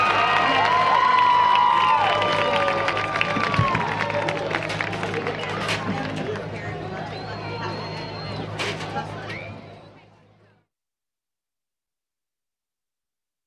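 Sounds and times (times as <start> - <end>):
crowd applauding marching bands: 0.0 - 8.4
crowd cheering: 0.0 - 10.0
whistle-like calls: 6.8 - 10.2.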